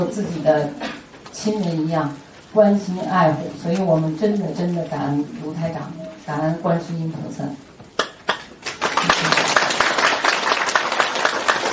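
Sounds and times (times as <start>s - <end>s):
speech: 0.0s - 7.6s
audience applause: 8.6s - 11.7s.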